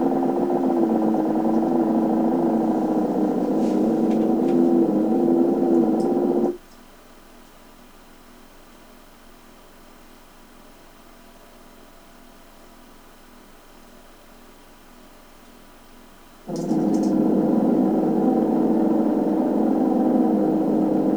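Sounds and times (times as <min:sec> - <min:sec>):
ambience: 0:00.0 - 0:06.6, 0:16.5 - 0:21.1.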